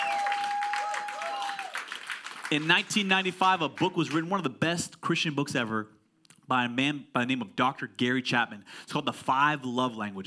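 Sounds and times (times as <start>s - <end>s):
audience applause: 0.0s - 3.2s
speech: 2.5s - 10.2s.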